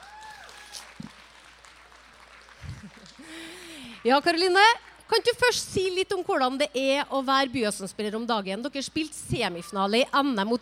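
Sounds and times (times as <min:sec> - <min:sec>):
audience clapping: 0:00.0 - 0:05.3
speech: 0:04.0 - 0:10.6.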